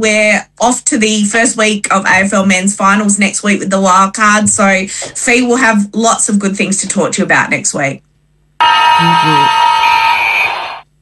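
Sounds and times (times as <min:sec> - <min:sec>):
speech: 0:00.0 - 0:10.5
full-time siren at football match: 0:08.6 - 0:10.9.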